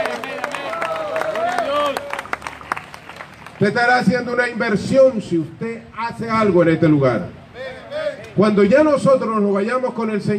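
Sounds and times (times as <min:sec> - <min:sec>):
audience clapping: 0:00.0 - 0:03.8
speech: 0:03.6 - 0:07.4, 0:08.4 - 0:10.3.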